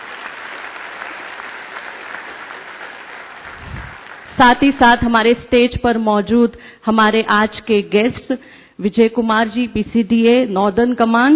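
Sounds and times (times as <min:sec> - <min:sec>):
audience applause: 0:00.0 - 0:04.4
speech: 0:04.4 - 0:11.3.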